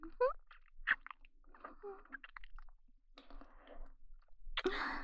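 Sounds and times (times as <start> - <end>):
wet kissing: 0.2 - 2.7.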